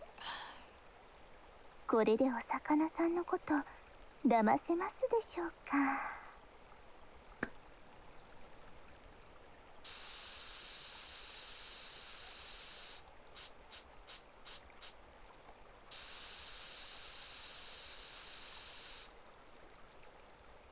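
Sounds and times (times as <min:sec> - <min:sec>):
speech: 0:01.9 - 0:06.1
aerosol spray on a fishing fly: 0:09.9 - 0:14.9, 0:15.9 - 0:19.1.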